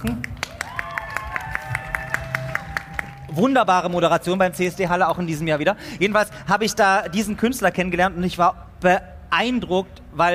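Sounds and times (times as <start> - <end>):
speech: 0.0 - 0.4, 3.4 - 10.3
audience applause: 0.0 - 4.0.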